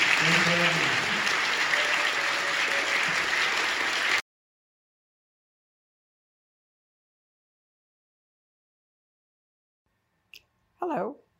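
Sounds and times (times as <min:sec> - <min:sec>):
audience round of applause: 0:00.0 - 0:04.2
speech: 0:10.8 - 0:11.2.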